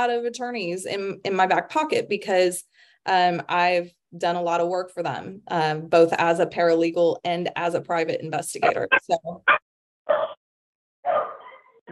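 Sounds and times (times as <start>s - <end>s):
speech: 0.0s - 10.4s
dogs barking: 8.6s - 10.4s, 11.0s - 11.8s.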